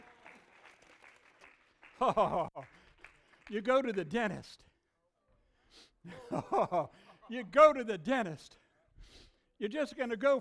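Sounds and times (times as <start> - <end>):
audience clapping hands: 0.0 - 4.3
laughter: 2.0 - 2.7, 6.1 - 7.5
speech: 2.0 - 2.8, 3.5 - 4.7, 5.7 - 10.3.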